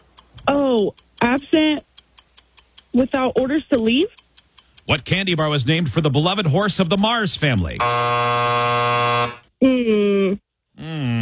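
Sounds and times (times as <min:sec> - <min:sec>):
speech: 0:00.5 - 0:01.9, 0:02.9 - 0:04.2, 0:04.9 - 0:11.2
quiz game time-up electronic buzzer: 0:07.8 - 0:09.5.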